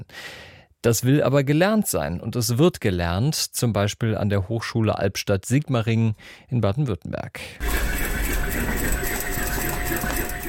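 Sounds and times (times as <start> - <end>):
speech: 0.8 - 8.9
sewing machines running in a university textile clothing lab: 7.6 - 10.4.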